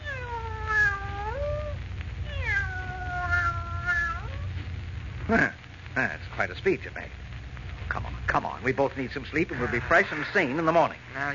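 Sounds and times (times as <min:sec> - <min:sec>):
cat meowing: 0:00.0 - 0:04.6
speech: 0:05.3 - 0:07.2, 0:08.3 - 0:11.3.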